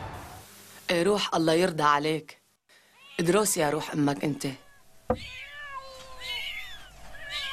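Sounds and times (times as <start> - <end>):
speech: 0.9 - 2.4, 3.2 - 5.4
several cats meowing: 4.4 - 7.5.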